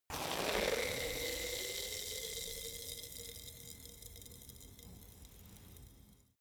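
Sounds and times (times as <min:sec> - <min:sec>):
vodka bottle fizzing: 0:00.1 - 0:03.3.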